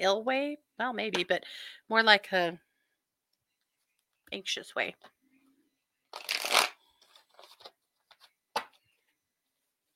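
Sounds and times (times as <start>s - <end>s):
speech: 0.0s - 2.6s, 4.3s - 5.2s
playing cards being shuffled: 6.1s - 8.7s.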